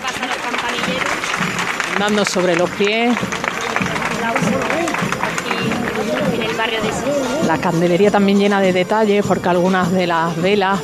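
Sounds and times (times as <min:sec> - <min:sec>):
crowd applause during a procession: 0:00.0 - 0:08.2
murmur of voices: 0:00.0 - 0:10.8
speech: 0:02.0 - 0:10.8.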